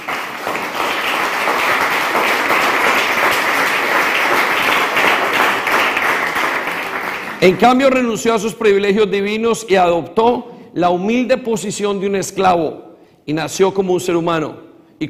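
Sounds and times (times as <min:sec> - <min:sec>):
audience applause: 0:00.0 - 0:07.6
speech: 0:07.4 - 0:15.0.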